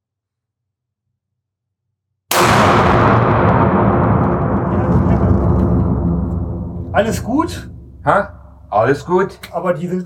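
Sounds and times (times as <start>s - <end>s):
gunshot from a shouldered long gun at a target disc: 2.3s - 8.6s
speech: 7.0s - 10.0s.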